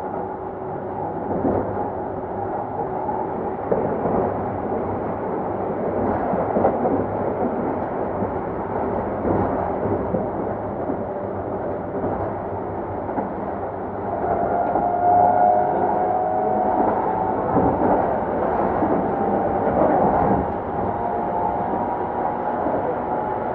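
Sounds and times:
Keikyu 2100 series train running between Yokohama and Misakiguchi: 0.0 - 23.5
brief thin whine: 14.0 - 19.9.

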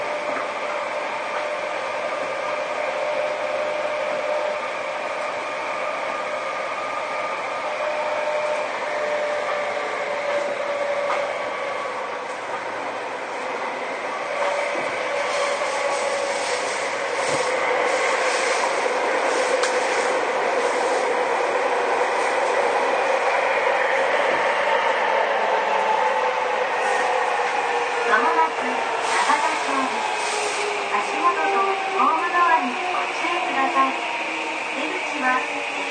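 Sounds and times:
Seibu 6000 series train running: 0.0 - 35.9.

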